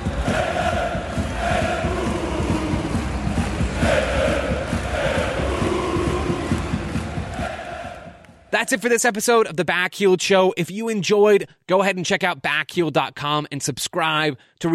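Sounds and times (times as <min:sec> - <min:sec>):
fans chanting in stadium stands: 0:00.0 - 0:08.5
speech: 0:08.6 - 0:14.7.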